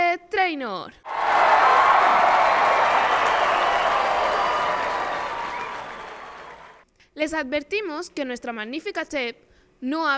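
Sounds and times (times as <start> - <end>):
speech: 0.5 - 1.1, 7.2 - 10.1
audience applause: 1.1 - 6.8.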